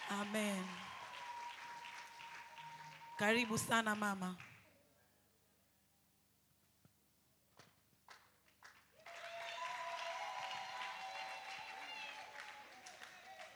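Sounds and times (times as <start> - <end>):
church congregation applauding: 0.0 - 4.6, 8.1 - 13.5
speech: 0.1 - 0.9, 3.2 - 4.5.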